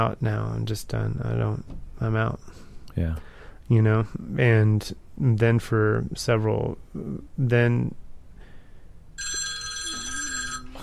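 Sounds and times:
speech: 0:00.0 - 0:08.0
two mobile phones ringing at once: 0:09.2 - 0:10.8.

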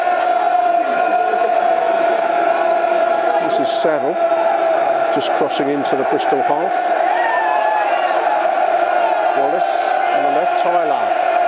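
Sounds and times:
football crowd cheering on their team: 0:00.0 - 0:11.4
speech: 0:03.5 - 0:04.4, 0:05.1 - 0:07.0, 0:09.6 - 0:11.4.

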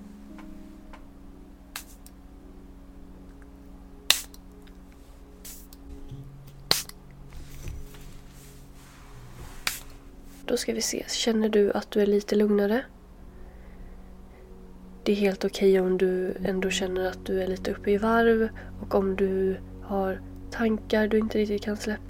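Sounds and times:
soft steady hum: 0:00.0 - 0:22.0
scented spray bottle spritzing: 0:05.4 - 0:05.7, 0:06.7 - 0:07.0
speech: 0:10.5 - 0:13.0, 0:15.1 - 0:22.0.

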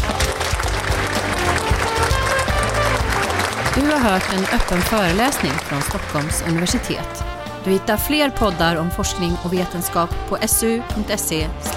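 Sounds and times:
audience applause: 0:00.0 - 0:07.2
speech: 0:03.8 - 0:11.7.

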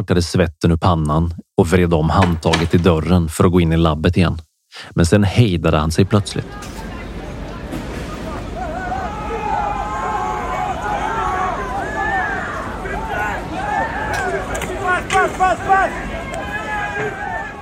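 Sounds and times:
speech: 0:00.0 - 0:06.8
crowd shouting in the street: 0:06.4 - 0:17.6.

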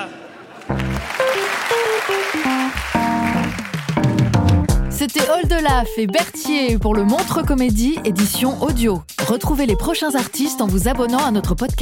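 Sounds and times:
audience applause: 0:00.5 - 0:04.8
speech: 0:01.7 - 0:02.5, 0:05.0 - 0:11.7.

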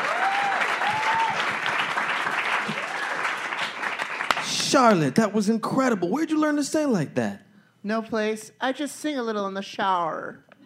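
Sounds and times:
faint whoops and cheers: 0:00.0 - 0:01.7, 0:02.6 - 0:03.4
crowd applause: 0:00.0 - 0:04.9
speech: 0:04.7 - 0:10.5.

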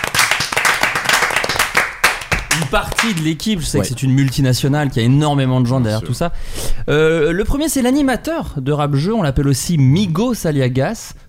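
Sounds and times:
audience applause welcoming guests to a studio recording: 0:00.0 - 0:03.2
speech: 0:02.7 - 0:11.2.

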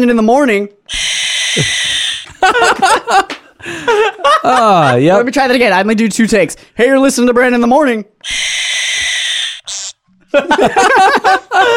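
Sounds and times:
speech: 0:00.0 - 0:08.4, 0:10.3 - 0:11.3
zany cartoonish bird call sound effects: 0:00.9 - 0:02.3, 0:08.2 - 0:10.0
laughter: 0:01.6 - 0:05.3, 0:10.3 - 0:11.7.

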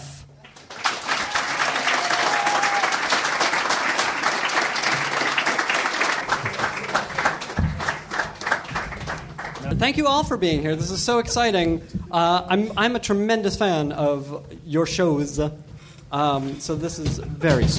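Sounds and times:
audience applause: 0:00.4 - 0:10.0
speech: 0:09.8 - 0:17.7.

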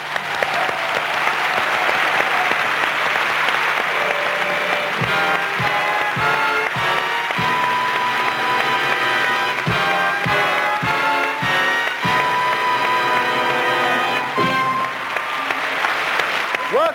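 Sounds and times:
scattered cheers: 0:00.0 - 0:04.9, 0:13.1 - 0:16.9
large audience applause welcoming a musician onstage: 0:00.0 - 0:16.9.

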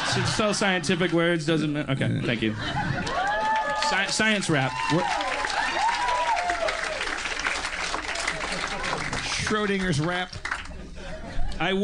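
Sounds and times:
laughter: 0:00.0 - 0:03.7, 0:08.0 - 0:09.8, 0:10.6 - 0:11.8
speech: 0:00.2 - 0:02.9, 0:03.9 - 0:05.2, 0:09.5 - 0:10.4, 0:11.6 - 0:11.8
voices and whoops: 0:03.0 - 0:07.2
crowd clapping: 0:03.0 - 0:11.0.

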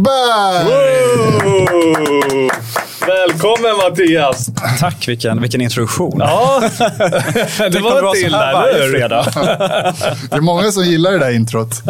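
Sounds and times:
speech: 0:00.0 - 0:11.8
applause: 0:01.0 - 0:04.5
laughter: 0:06.2 - 0:10.6.

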